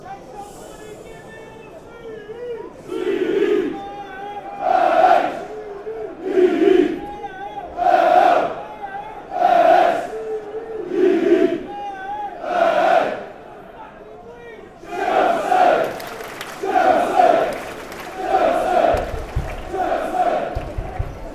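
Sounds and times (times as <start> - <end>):
football fans chanting letters: 2.8 - 11.7, 12.3 - 13.7, 14.8 - 21.3.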